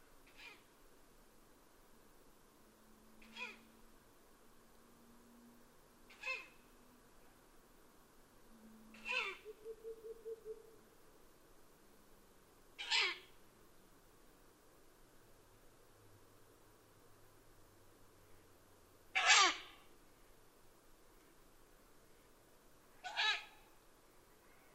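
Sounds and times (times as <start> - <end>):
owl screeching: 3.2 - 3.7, 6.1 - 6.6, 8.9 - 10.6, 12.8 - 13.2, 19.2 - 19.7, 23.0 - 23.6.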